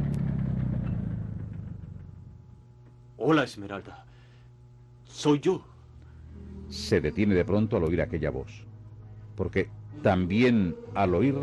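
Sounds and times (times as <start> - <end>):
motor vehicle engine rumble on a road: 0.0 - 2.7
speech: 3.2 - 4.2, 5.1 - 5.7, 6.7 - 8.7, 9.4 - 11.4.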